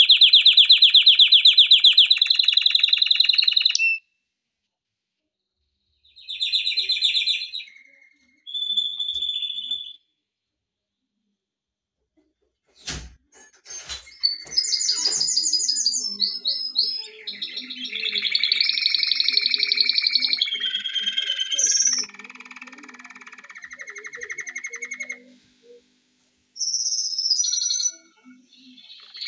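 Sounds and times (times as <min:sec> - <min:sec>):
canary singing: 0:00.0 - 0:04.0, 0:06.0 - 0:10.0, 0:14.1 - 0:29.2.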